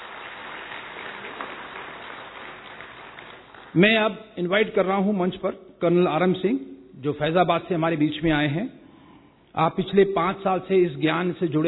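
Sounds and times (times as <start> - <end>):
faint audience applause after a stage performance: 0.0 - 3.8
speech: 3.7 - 8.8, 9.6 - 11.6.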